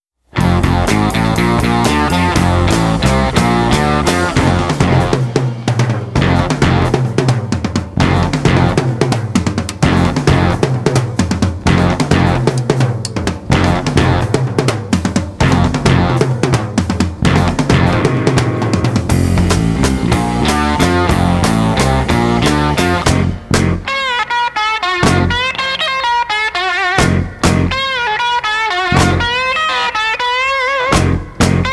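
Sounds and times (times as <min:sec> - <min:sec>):
instrumental music: 0:00.3 - 0:31.7.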